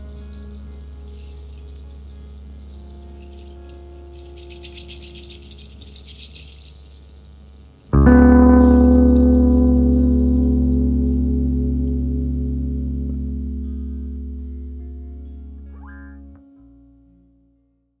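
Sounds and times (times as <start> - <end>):
roots rock music: 8.0 - 16.3.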